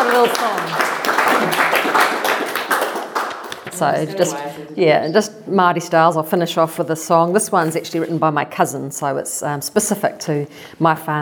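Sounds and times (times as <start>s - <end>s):
audience clapping during a talk about sound: 0.0s - 4.4s
speech: 3.8s - 11.1s.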